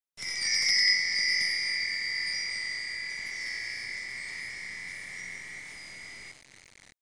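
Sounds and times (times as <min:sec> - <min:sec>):
wind chime: 0:00.2 - 0:06.4.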